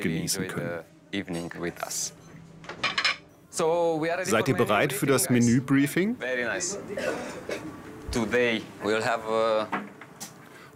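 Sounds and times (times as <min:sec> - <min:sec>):
speech: 0:00.0 - 0:02.8, 0:03.6 - 0:09.9
restaurant table set with special plates and cutlery: 0:01.2 - 0:03.3.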